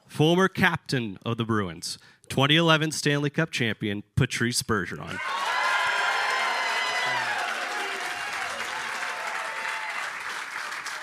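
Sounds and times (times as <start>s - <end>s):
speech: 0.2s - 5.5s
rowdy crowd applauding: 5.2s - 11.0s.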